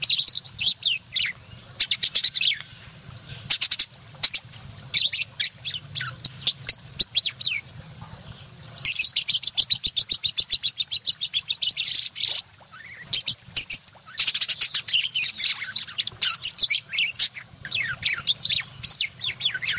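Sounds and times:
budgerigar chattering song of high chirps, sweeps and twittering: 0.0s - 2.7s, 3.3s - 7.6s, 8.8s - 19.7s.

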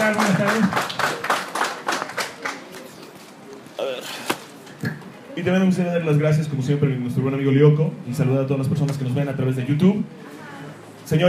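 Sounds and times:
applause: 0.0s - 3.0s
speech: 0.2s - 1.0s, 5.4s - 10.2s, 11.1s - 11.2s.

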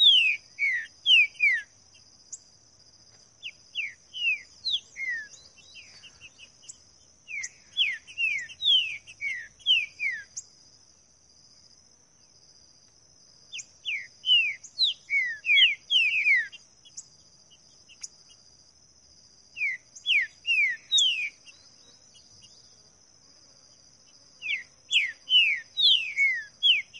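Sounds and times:
green-winged saltator singing in the bush: 0.0s - 1.7s, 3.4s - 10.4s, 13.5s - 17.1s, 19.5s - 22.7s, 24.4s - 26.9s.

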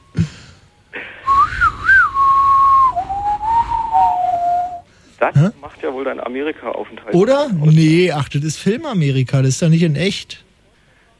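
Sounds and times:
person whistling a tune: 1.2s - 4.9s
speech: 5.4s - 10.5s.

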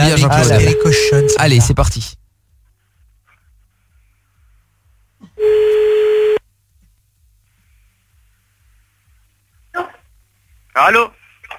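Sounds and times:
telephone ringing tone as an outgoing call is placed: 0.1s - 1.5s, 5.4s - 6.4s
speech: 0.1s - 2.2s, 10.8s - 11.2s.

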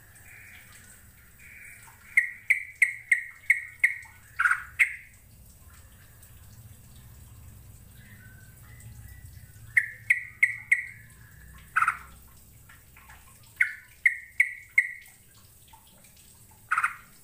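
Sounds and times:
bird calling: 0.2s - 5.1s, 8.0s - 12.2s, 13.4s - 15.1s.

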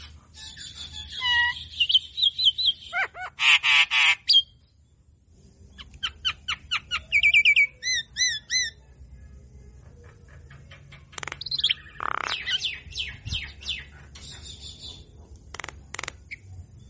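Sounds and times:
Javan myna song with downslurred whistles and looped whistled notes: 0.0s - 4.6s, 5.8s - 8.8s, 10.5s - 15.0s.

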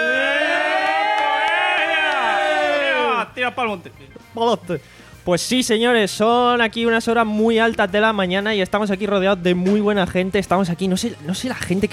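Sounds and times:
group of people shouting: 0.0s - 3.3s
speech: 3.4s - 11.9s.

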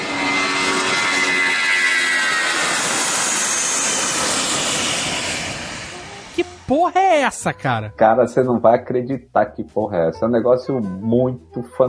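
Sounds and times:
voice imitating airliner engine fan whirring during takeoff: 0.0s - 6.4s
speech: 6.7s - 11.8s.

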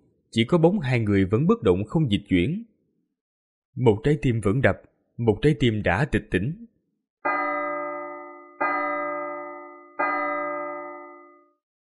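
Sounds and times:
speech: 0.3s - 2.7s, 3.8s - 6.7s
bell tolling on Mount Sumeru: 7.3s - 11.6s.

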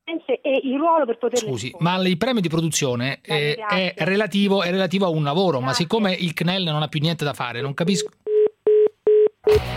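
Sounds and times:
speech: 0.1s - 8.2s
telephone dialing tones: 8.3s - 9.6s.

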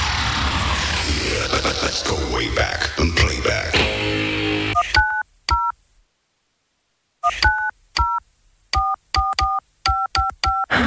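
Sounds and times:
noisy rushing sound: 0.0s - 2.5s
speech: 1.6s - 3.7s
DTMF touch-tone beeps of a phone number being dialed: 4.8s - 5.7s, 7.2s - 8.2s, 8.8s - 10.7s.

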